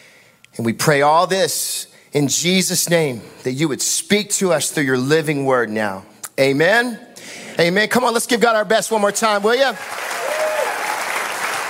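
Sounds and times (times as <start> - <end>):
speech: 0.6 - 10.3
audience applause: 9.7 - 11.6.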